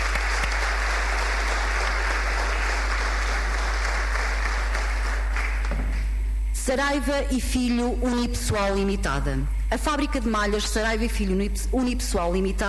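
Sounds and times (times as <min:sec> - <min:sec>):
audience applause: 0:00.0 - 0:06.0
speech: 0:06.7 - 0:12.6.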